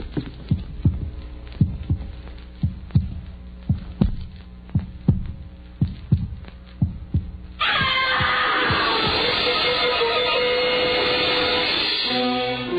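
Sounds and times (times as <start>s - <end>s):
heartbeat heard through a stethoscope: 0.0s - 9.4s
burst of hiss: 8.5s - 12.6s.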